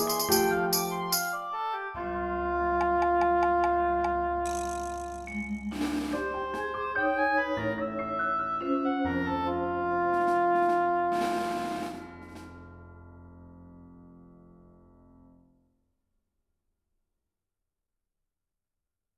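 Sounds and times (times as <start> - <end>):
percussion: 0.0 - 1.5, 2.8 - 7.0
oboe: 0.0 - 4.5, 6.6 - 11.7
piano: 0.0 - 15.7.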